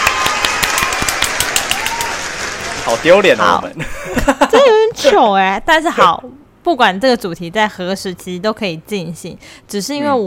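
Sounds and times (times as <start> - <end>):
hosts clapping for themselves: 0.0 - 3.4
speech: 2.9 - 10.2
laughter: 3.8 - 5.0.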